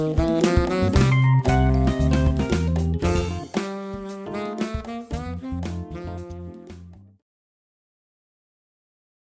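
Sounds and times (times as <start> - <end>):
funk tenor: 0.0 - 7.1.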